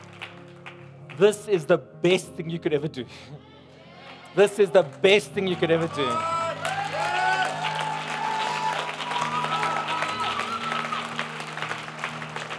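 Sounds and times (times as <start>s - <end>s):
audience clapping: 0.0s - 1.7s, 4.0s - 12.5s
speech: 1.2s - 3.5s, 4.4s - 6.4s.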